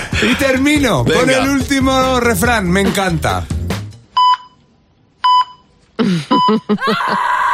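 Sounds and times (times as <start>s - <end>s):
speech: 0.2s - 3.6s, 6.0s - 7.4s
hospital heart monitor electronic beeps: 4.2s - 4.6s, 5.2s - 5.8s.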